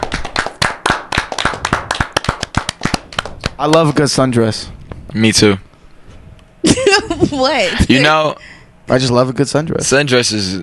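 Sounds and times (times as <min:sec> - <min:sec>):
people clapping in the studio: 0:00.0 - 0:04.0
speech: 0:03.6 - 0:05.7, 0:06.7 - 0:10.6.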